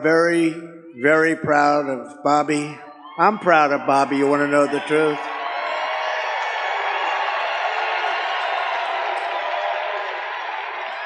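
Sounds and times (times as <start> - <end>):
speech: 0.0 - 5.3
audience cheering: 3.2 - 11.0
audience applause: 4.6 - 11.0.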